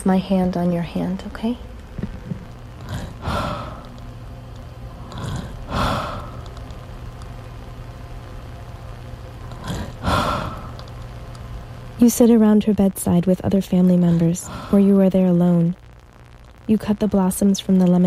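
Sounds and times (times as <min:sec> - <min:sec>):
speech: 0:00.0 - 0:01.7, 0:12.0 - 0:15.8, 0:16.7 - 0:18.0
elderly woman breathing at her bedside: 0:02.9 - 0:04.0, 0:05.0 - 0:06.6, 0:09.6 - 0:10.8, 0:14.2 - 0:14.9.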